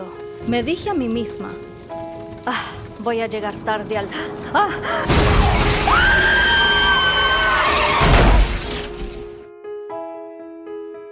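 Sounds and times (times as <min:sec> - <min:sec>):
speech: 0:00.4 - 0:01.7, 0:02.4 - 0:06.2
car crash impact: 0:05.0 - 0:09.4
glass shattering in a car crash: 0:05.1 - 0:09.4.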